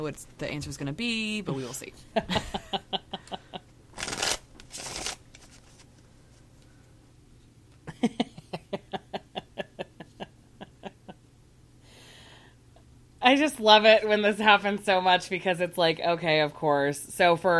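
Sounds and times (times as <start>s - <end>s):
speech: 0.0s - 2.7s, 13.3s - 17.5s
laughter: 2.2s - 3.6s, 7.9s - 11.2s
tarot cards being shuffled: 4.0s - 6.0s.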